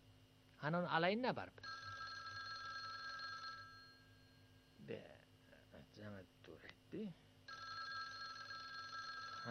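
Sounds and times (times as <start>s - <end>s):
speech: 0.6s - 1.8s, 4.9s - 5.2s, 6.0s - 7.2s
telephone ringing: 1.6s - 4.4s, 7.5s - 9.5s.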